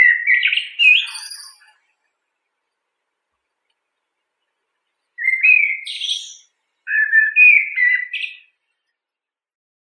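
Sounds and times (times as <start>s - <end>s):
blackbird Turdus merula: 0.0s - 1.8s, 5.2s - 8.5s.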